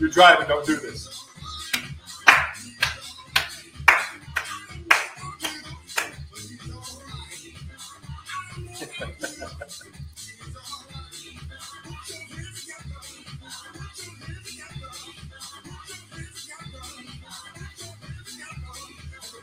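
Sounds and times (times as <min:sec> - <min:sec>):
speech: 0:00.0 - 0:01.2
hands clapping: 0:01.6 - 0:06.3
laughter: 0:08.6 - 0:10.0.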